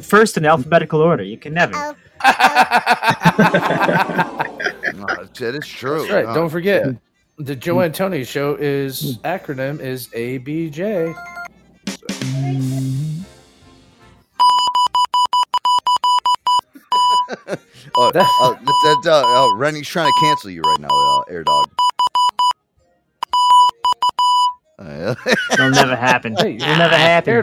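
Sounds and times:
speech: 0.0 - 12.7, 17.5 - 21.8, 24.8 - 27.4
laughter: 2.2 - 6.9, 16.7 - 19.5, 24.8 - 27.4
morse code beeps: 14.4 - 22.6, 23.2 - 24.6.

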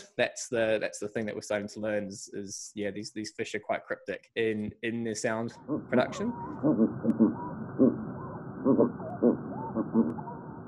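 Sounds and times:
speech: 0.2 - 8.0, 8.7 - 10.3
ringed seal vocalization: 5.5 - 10.6.

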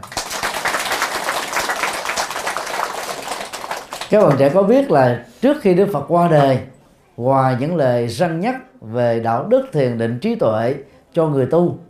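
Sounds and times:
crowd applause: 0.0 - 4.6
speech: 4.1 - 11.8.

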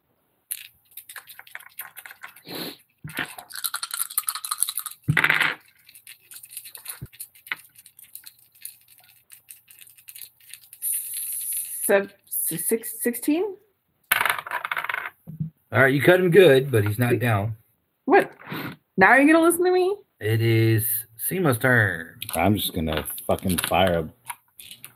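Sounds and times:
dice rolled for damage in a tabletop game: 0.5 - 11.9, 14.1 - 15.2, 22.2 - 24.9
speech: 11.9 - 13.6, 15.7 - 17.6, 19.0 - 24.2.

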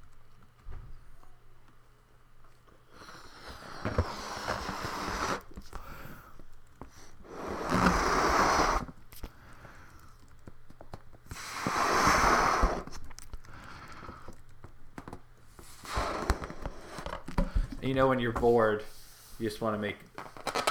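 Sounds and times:
blowing up a balloon by mouth: 2.9 - 6.1, 7.0 - 9.0, 11.2 - 14.4, 15.5 - 17.6
speech: 17.9 - 20.1.

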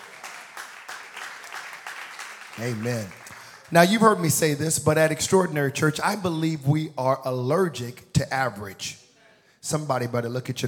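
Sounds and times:
audience clapping hands: 0.0 - 4.6
speech: 2.6 - 9.0, 9.6 - 10.6.

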